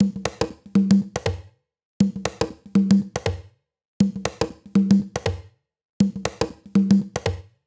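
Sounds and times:
lounge house conga loop: 0.0 - 1.4, 2.0 - 3.4, 4.0 - 5.4, 6.0 - 7.4.

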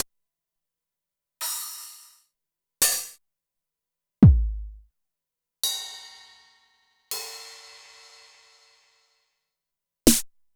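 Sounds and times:
drum machine kit: 4.2 - 4.8.

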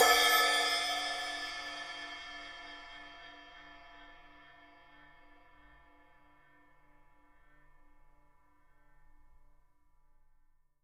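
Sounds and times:
cymbal effects: 0.0 - 4.4.

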